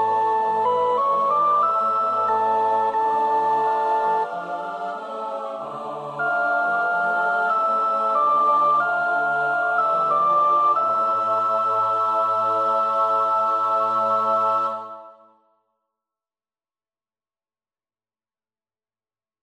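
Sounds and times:
soprano singing a choral piece: 0.0s - 15.3s.

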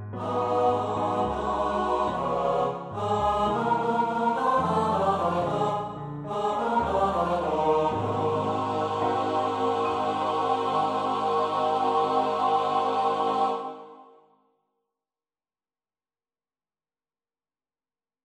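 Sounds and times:
SATB choir part practice: 0.0s - 14.3s.

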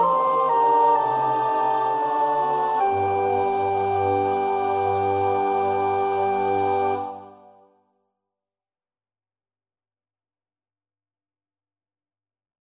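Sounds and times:
soprano practising a choir part: 0.0s - 7.7s.

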